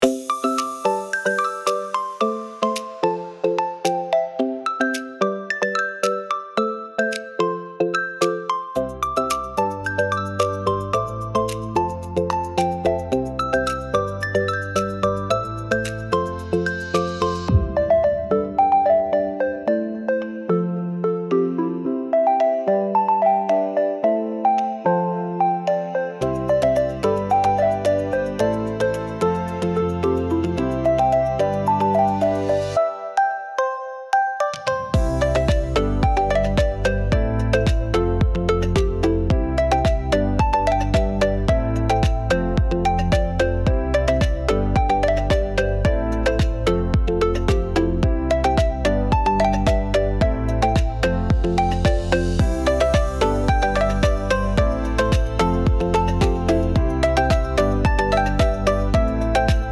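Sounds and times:
vibrant tropical island music: 0.0 - 59.7.

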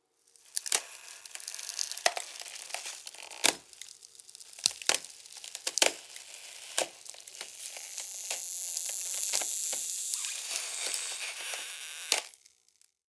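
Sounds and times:
ice crunching and cracking under pressure: 0.3 - 13.0.

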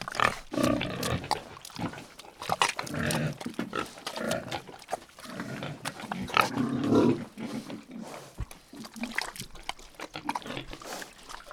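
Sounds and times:
farm pigs moving in mud: 0.0 - 11.5.

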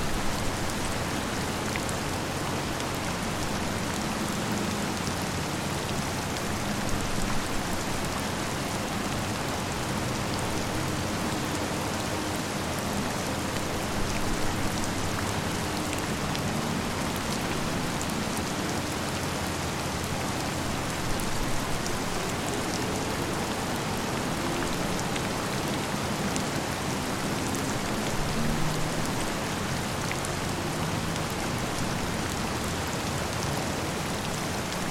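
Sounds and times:
heavy rainstorm in a city: 0.0 - 34.8.

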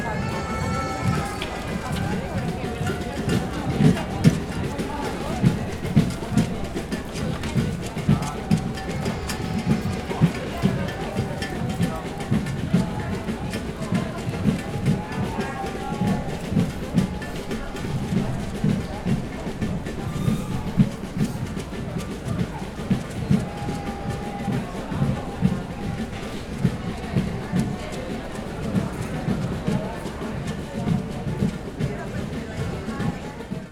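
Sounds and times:
busy drummer drumming in a parade: 0.0 - 33.7
city street ambience: 0.0 - 33.7.

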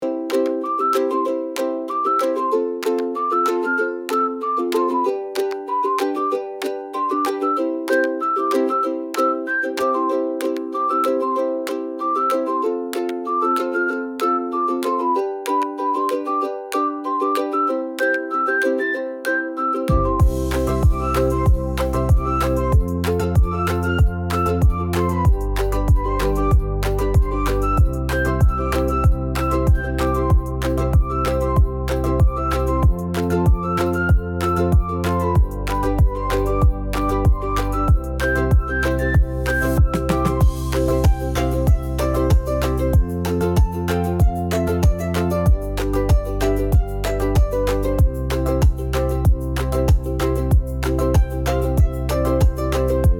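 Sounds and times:
relaxed tropical background music: 0.0 - 53.1.

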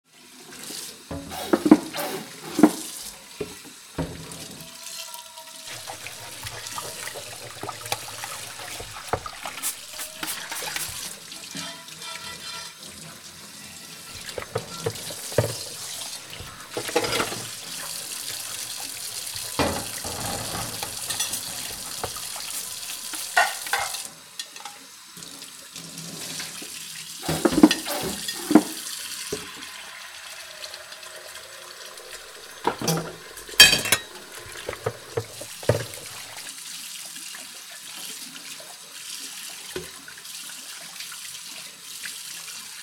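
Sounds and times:
water flowing in the sink: 1.1 - 4.6, 5.7 - 11.6, 13.8 - 24.1, 27.2 - 29.1, 31.4 - 36.5
plates clinking while washing dishes in the sink: 1.2 - 2.8, 5.7 - 11.1, 14.1 - 24.1, 27.2 - 28.8, 32.6 - 36.4.

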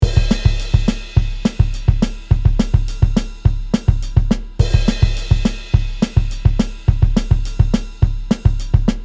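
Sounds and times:
drum loop: 0.0 - 9.0.

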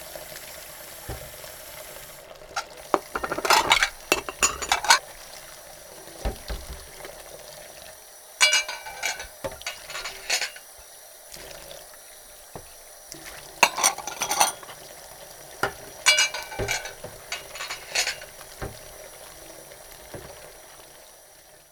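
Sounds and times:
glasses clinking during household dish washing: 2.6 - 5.0, 8.4 - 10.8, 13.6 - 14.9, 15.6 - 19.0.

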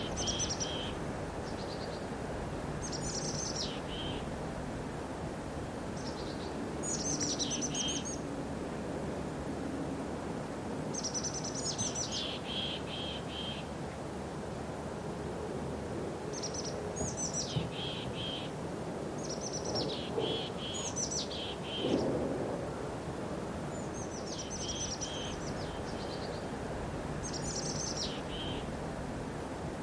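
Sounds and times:
birds singing: 0.0 - 2.1, 2.8 - 4.3, 6.0 - 8.3, 10.9 - 13.7, 16.3 - 18.6, 19.2 - 22.2, 23.7 - 28.8
light wind: 0.0 - 29.8.

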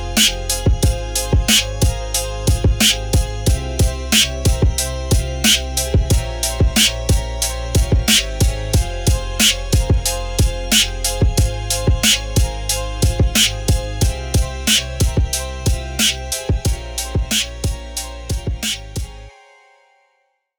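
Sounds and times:
rap beat: 0.0 - 19.2.

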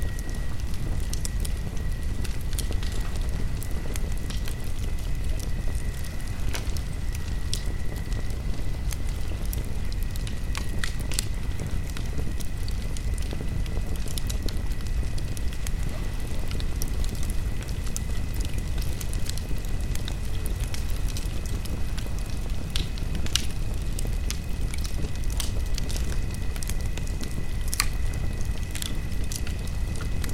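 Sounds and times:
campfire at night: 0.0 - 30.3.

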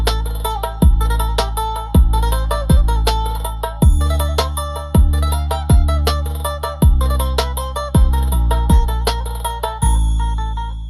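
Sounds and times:
Middle Eastern drum beat: 0.0 - 10.5.

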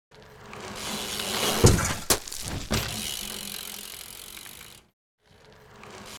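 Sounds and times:
bicycle falling down after losing control: 0.8 - 4.7.

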